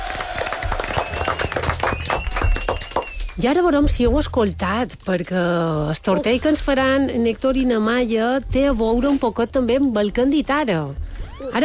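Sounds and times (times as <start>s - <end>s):
audience applause: 0.0s - 3.4s
speech: 3.4s - 11.6s.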